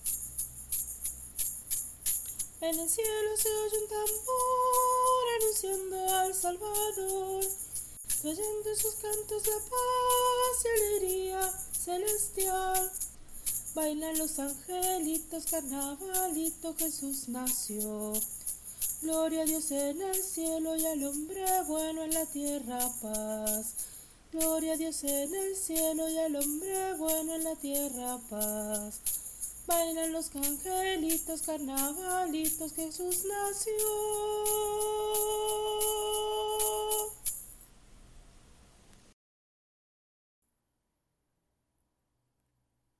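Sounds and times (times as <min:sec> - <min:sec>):
shaker in carnavalito music: 0:00.0 - 0:37.7
person singing carnavalito: 0:02.6 - 0:13.1, 0:13.7 - 0:18.3, 0:19.0 - 0:23.8, 0:24.4 - 0:29.0, 0:29.7 - 0:37.3.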